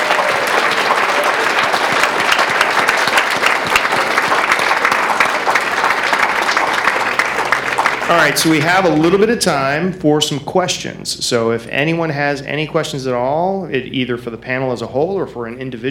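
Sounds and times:
audience applause: 0.0s - 9.1s
speech: 8.1s - 15.8s.

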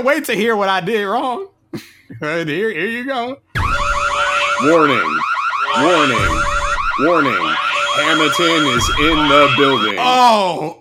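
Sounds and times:
speech: 0.0s - 3.8s, 4.6s - 10.7s
high-pitched warbling siren sound effect: 3.6s - 10.2s.

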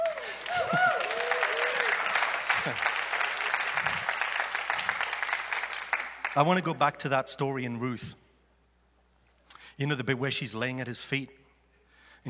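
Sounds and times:
cheers and whoops: 0.0s - 2.9s
crowd applauding: 0.0s - 6.5s
speech: 2.6s - 2.9s, 6.4s - 8.2s, 9.8s - 11.4s.

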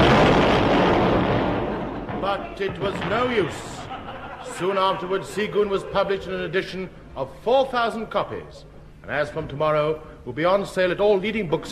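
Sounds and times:
explosion: 0.0s - 4.0s
speech: 2.3s - 3.8s, 4.4s - 11.6s
laughter: 2.4s - 6.2s.

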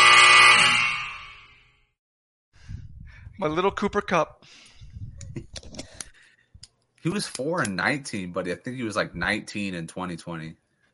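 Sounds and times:
game buzzer: 0.0s - 1.8s
speech: 3.4s - 4.7s, 7.0s - 10.6s.

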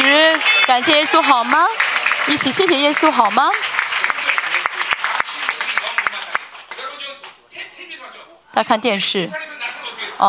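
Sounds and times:
audience clapping: 0.0s - 7.4s
speech: 0.8s - 3.7s, 8.6s - 10.2s.

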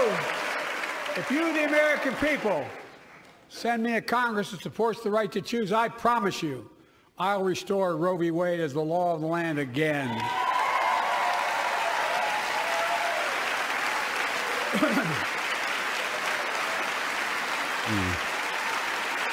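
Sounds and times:
applause and cheering: 0.0s - 3.4s, 10.0s - 19.3s
speech: 1.2s - 2.8s, 3.5s - 10.4s.

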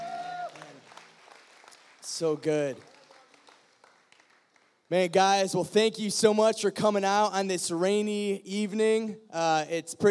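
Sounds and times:
crowd applauding for worship band: 0.0s - 4.9s
speech: 2.1s - 2.9s, 4.9s - 10.0s.

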